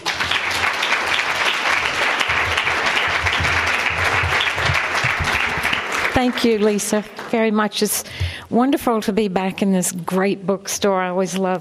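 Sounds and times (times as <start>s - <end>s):
bookstore audience applause welcoming an author in Denver: 0.0s - 7.4s
speech: 6.2s - 11.5s.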